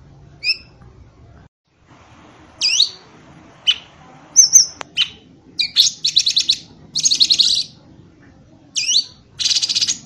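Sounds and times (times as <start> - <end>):
bird song of sharp high chirps, slurred whistles and buzzy rattles: 0.4 - 0.8, 2.6 - 3.0, 3.6 - 7.8, 8.8 - 10.0.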